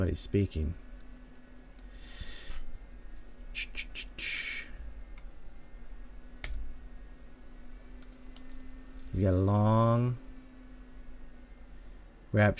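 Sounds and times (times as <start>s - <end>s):
speech: 0.0s - 0.8s, 9.2s - 10.2s, 12.3s - 12.5s
low steady hum: 0.0s - 12.5s
computer mouse clicks: 6.4s - 6.7s.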